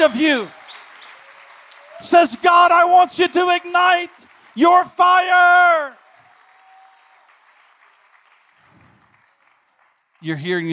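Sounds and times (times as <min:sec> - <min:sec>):
speech: 0:00.0 - 0:00.6, 0:02.0 - 0:06.0, 0:10.2 - 0:10.7
audience hand clapping: 0:00.0 - 0:10.7.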